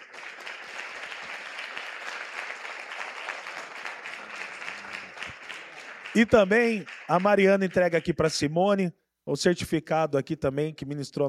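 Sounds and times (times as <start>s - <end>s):
audience applause: 0.0s - 8.3s
speech: 6.2s - 11.2s.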